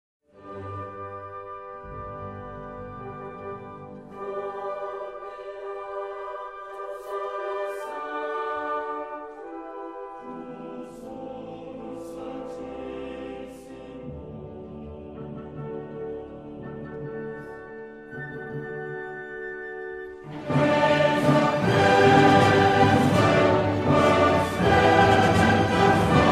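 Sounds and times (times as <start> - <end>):
choral mass: 0.3 - 18.5, 20.1 - 26.2.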